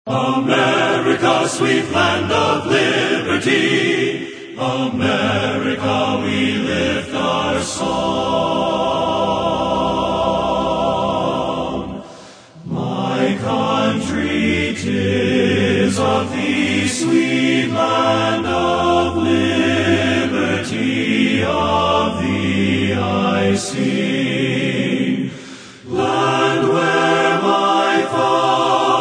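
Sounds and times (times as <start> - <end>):
men's chorus singing: 0.1 - 28.9.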